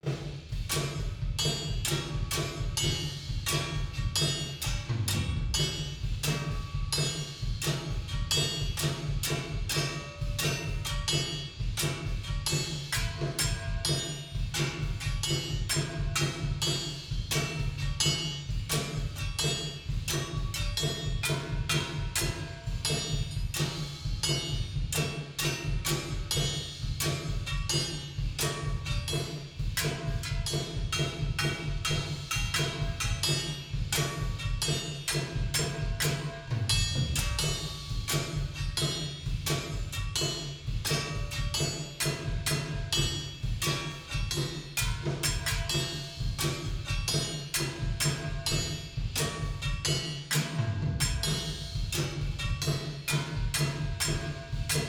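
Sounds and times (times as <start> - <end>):
layered drums: 0.0 - 54.8.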